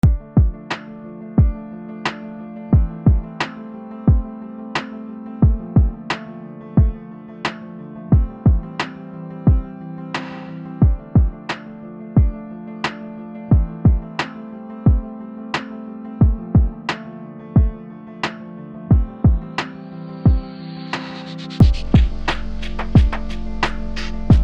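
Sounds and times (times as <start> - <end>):
lo-fi music: 0.0 - 24.4.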